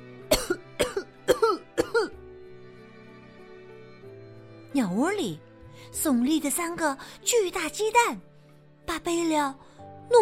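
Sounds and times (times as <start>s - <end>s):
coughing from choking on dust: 0.3s - 2.2s
speech: 4.8s - 8.3s, 8.9s - 10.1s.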